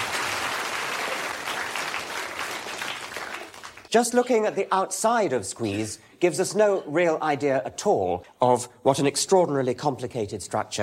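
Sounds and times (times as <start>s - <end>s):
audience round of applause: 0.0s - 3.9s
speech: 3.9s - 10.8s.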